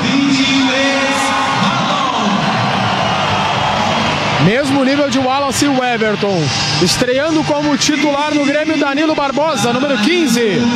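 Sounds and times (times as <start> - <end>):
yells and whoops: 0.0 - 6.6
large stadium crowd cheering: 0.0 - 10.7
speech: 4.5 - 10.7.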